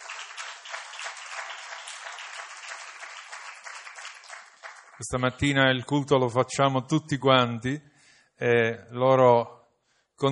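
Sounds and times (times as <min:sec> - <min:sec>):
audience applause: 0:00.0 - 0:05.1
speech: 0:05.0 - 0:09.6.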